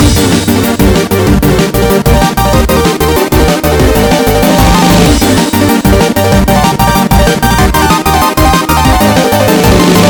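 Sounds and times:
warrior theme music: 0:00.0 - 0:10.0.

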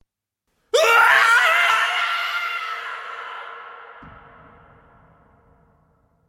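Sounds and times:
angry ghostly howl: 0:00.8 - 0:04.4.

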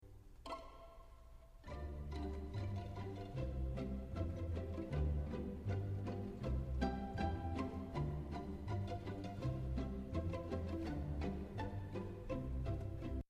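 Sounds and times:
pianissimo music: 0:00.0 - 0:13.2.

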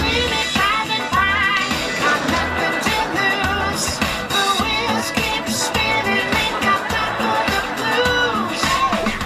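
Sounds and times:
cool disco music: 0:00.0 - 0:09.2
laughter: 0:01.5 - 0:09.2.

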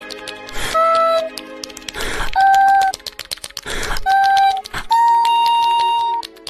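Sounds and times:
smacking: 0:00.0 - 0:06.4.

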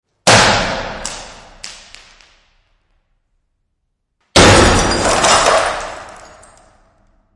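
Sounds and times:
something breaking: 0:04.4 - 0:07.1.

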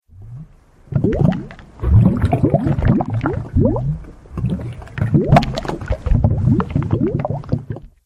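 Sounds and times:
lava noises: 0:00.0 - 0:07.9.

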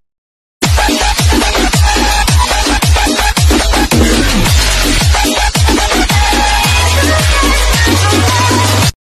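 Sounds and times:
cumbia dubstep music: 0:00.6 - 0:08.9.

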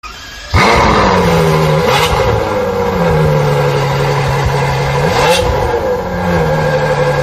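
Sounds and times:
car sounds: 0:00.1 - 0:07.2.

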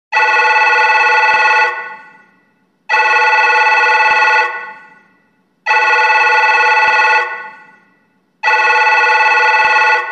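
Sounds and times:
phone ringtone: 0:00.2 - 0:01.9, 0:02.9 - 0:04.8, 0:05.7 - 0:07.5, 0:08.4 - 0:10.1.

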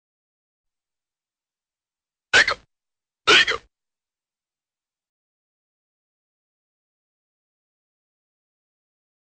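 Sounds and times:
person hiccuping: 0:02.4 - 0:02.6, 0:03.3 - 0:03.7.

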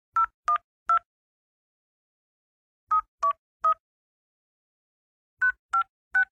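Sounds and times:
keypad beeps: 0:00.2 - 0:01.1, 0:02.9 - 0:03.8, 0:05.4 - 0:06.2.

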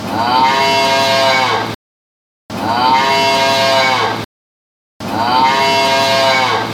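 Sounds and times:
cow mooing: 0:00.2 - 0:01.7, 0:02.6 - 0:04.2, 0:05.2 - 0:06.7.

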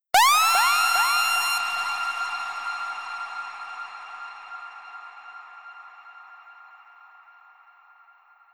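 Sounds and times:
siren: 0:00.1 - 0:02.7.

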